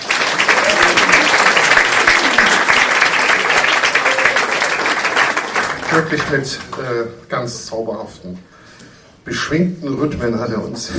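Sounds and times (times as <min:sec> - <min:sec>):
audience applause: 0:00.0 - 0:06.9
speech: 0:06.0 - 0:08.5, 0:09.2 - 0:10.9.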